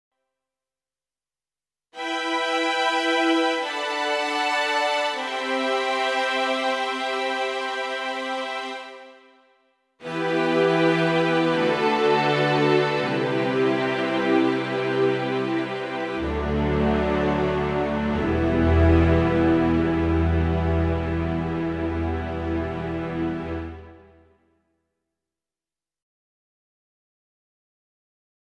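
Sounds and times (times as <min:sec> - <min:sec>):
strings: 0:02.0 - 0:09.4, 0:10.0 - 0:24.3.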